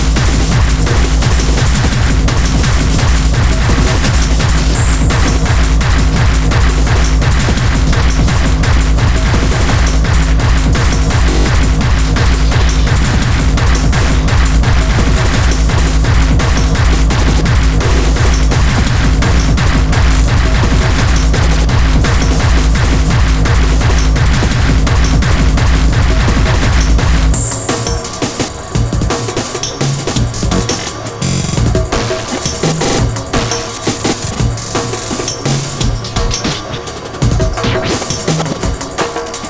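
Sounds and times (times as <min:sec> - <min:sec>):
aggressive tribal music: 0:00.0 - 0:39.4.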